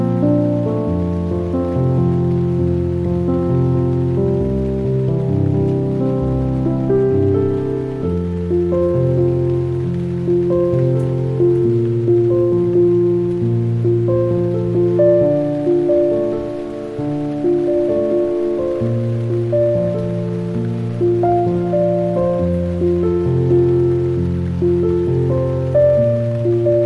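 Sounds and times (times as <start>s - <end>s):
piano napping music: 0.0s - 26.8s
rain: 0.0s - 26.8s.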